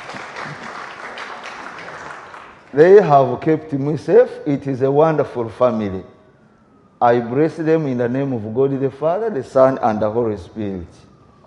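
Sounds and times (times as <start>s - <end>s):
church congregation clapping: 0.0s - 3.3s
speech: 2.7s - 6.2s, 7.0s - 11.1s.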